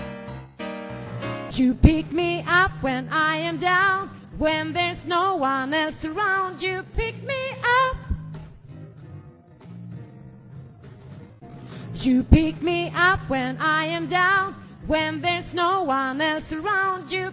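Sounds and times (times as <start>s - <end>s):
soprano voice part singing: 1.5s - 8.2s, 12.0s - 17.3s.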